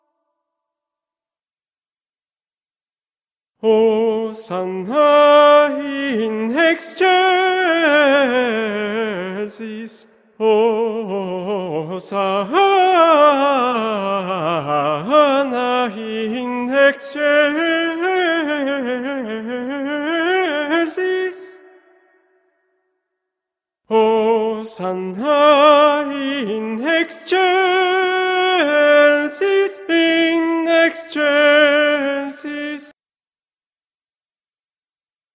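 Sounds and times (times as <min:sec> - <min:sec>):
tenor singing: 0:03.6 - 0:22.1, 0:23.9 - 0:32.9.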